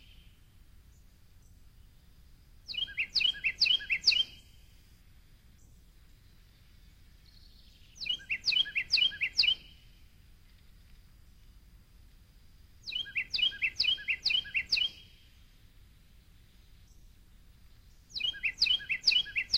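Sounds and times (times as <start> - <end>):
Carolina wren singing: 0.0 - 4.9, 5.5 - 10.1, 12.8 - 19.5.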